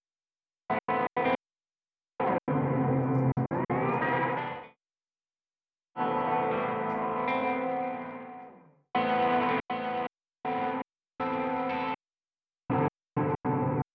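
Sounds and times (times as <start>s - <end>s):
guitar: 0.7s - 1.4s, 2.2s - 4.8s, 6.0s - 12.0s, 12.7s - 13.9s.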